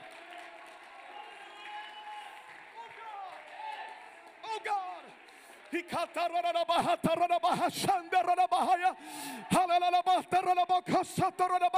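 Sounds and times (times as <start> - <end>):
audience clapping: 0.0 - 7.6
speech: 5.7 - 11.7.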